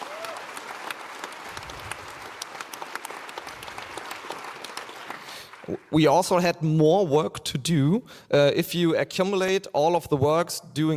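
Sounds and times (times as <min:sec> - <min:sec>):
audience applause: 0:00.0 - 0:06.0
speech: 0:05.7 - 0:10.9.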